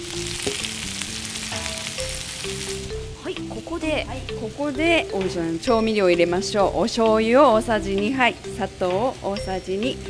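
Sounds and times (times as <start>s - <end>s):
daikon radish and chicken stir-frying in a pan: 0.0s - 4.8s
speech: 3.3s - 10.0s.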